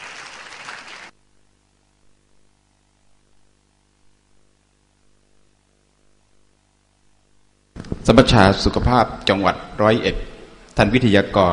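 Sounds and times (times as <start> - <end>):
audience applause: 0.0 - 1.1
low steady hum: 1.0 - 11.5
speech: 8.1 - 11.5.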